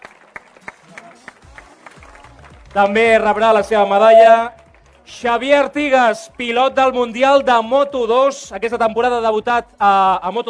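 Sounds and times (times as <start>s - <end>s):
scattered audience applause: 0.0s - 7.7s
speech: 2.8s - 10.4s.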